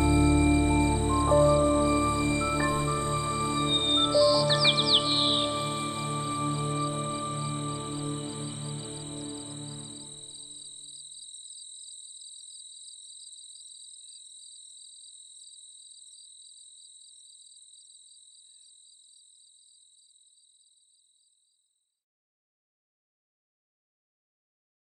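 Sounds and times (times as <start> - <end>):
cello: 0.0 - 10.4.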